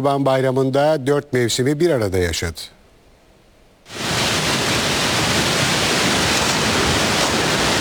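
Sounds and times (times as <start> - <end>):
speech: 0.0 - 2.8
Camili stream overflowing during heavy rain in Artvin Borçka: 3.9 - 7.8.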